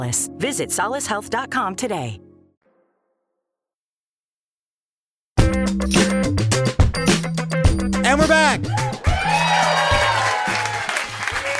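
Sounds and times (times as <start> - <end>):
speech: 0.0 - 2.3, 5.5 - 6.3, 8.1 - 9.7
music with bass notes stepping in a repeating pattern: 5.4 - 10.1
audience applause welcoming a guest to the stage: 8.7 - 11.5.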